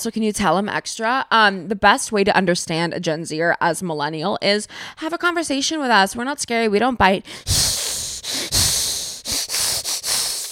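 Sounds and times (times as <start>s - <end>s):
speech: 0.0s - 7.8s
person hissing through teeth: 7.4s - 10.5s.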